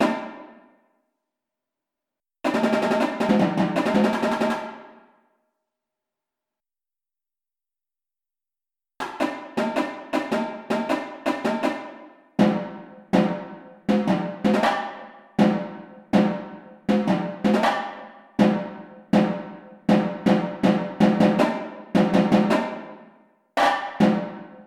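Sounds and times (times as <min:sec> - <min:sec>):
tenor drums: 0:00.0 - 0:00.6, 0:02.5 - 0:04.9, 0:09.0 - 0:24.6.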